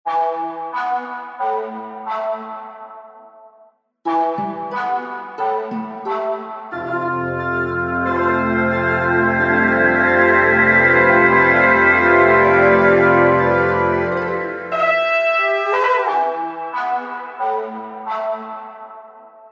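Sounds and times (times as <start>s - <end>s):
horn: 0.1s - 3.1s, 4.1s - 19.4s.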